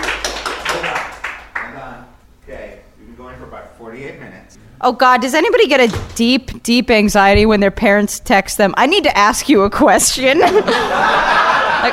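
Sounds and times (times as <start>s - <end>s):
scattered clapping from a small audience: 0.0s - 1.9s
speech: 3.5s - 11.9s
laughter: 10.4s - 11.9s.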